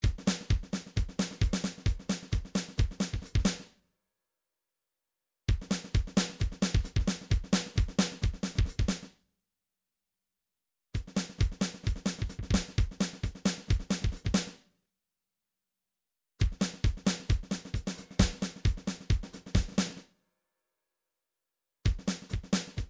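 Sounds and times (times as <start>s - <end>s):
MIDI drums: 0.0s - 3.6s, 5.5s - 9.1s, 11.0s - 14.5s, 16.4s - 20.0s, 21.9s - 22.8s.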